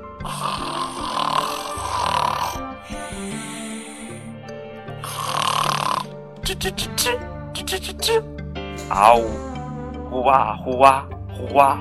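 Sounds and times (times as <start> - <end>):
loud snoring: 0.1 - 6.2
speech: 6.5 - 11.8.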